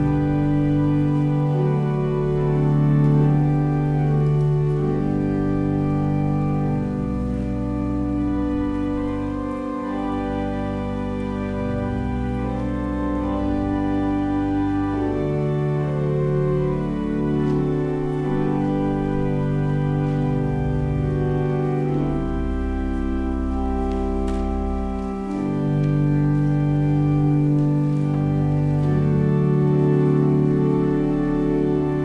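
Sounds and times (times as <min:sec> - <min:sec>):
organ music: 0:00.0 - 0:32.0.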